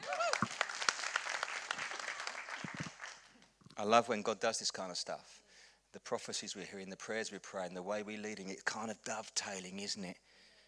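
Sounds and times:
audience applause: 0:00.0 - 0:03.4
speech: 0:03.8 - 0:05.4, 0:06.0 - 0:10.2.

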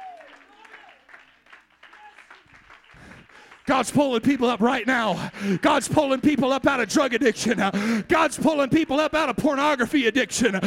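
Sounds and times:
crowd clapping: 0:00.0 - 0:07.9
speech: 0:03.7 - 0:10.6.

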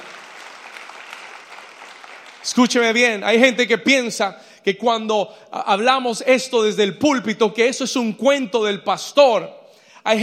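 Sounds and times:
audience applause: 0:00.0 - 0:02.9
speech: 0:02.4 - 0:10.2.

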